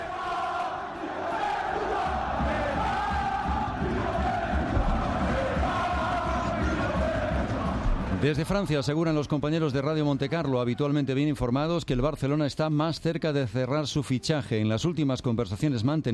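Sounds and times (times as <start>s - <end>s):
massive football stadium crowd chanting in unison: 0.0s - 8.4s
speech: 8.2s - 16.1s.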